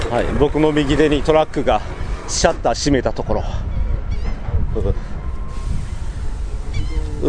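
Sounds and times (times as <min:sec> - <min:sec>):
speech: 0:00.1 - 0:03.7, 0:04.7 - 0:05.1
seagulls calling: 0:03.6 - 0:07.2.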